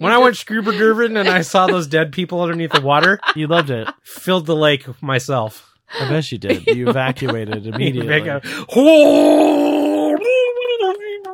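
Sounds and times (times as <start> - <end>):
laughter: 0.0 - 4.4, 6.0 - 8.9
speech: 0.0 - 10.6
voice imitating someone screaming underwater: 8.7 - 10.2.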